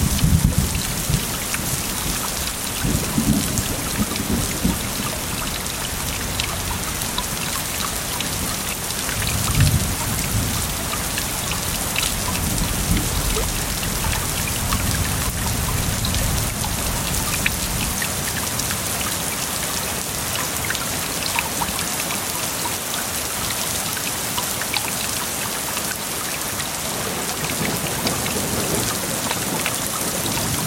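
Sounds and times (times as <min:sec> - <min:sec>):
deep rumbles of thunder: 0:00.0 - 0:16.9
rain falling from a shelter hut on the Berliner Höhenweg in the Zillertal: 0:00.0 - 0:30.6.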